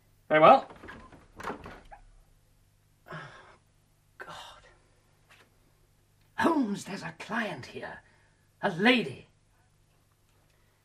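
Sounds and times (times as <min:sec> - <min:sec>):
speech: 0:00.3 - 0:00.7, 0:06.8 - 0:09.3
door being opened: 0:00.6 - 0:02.1.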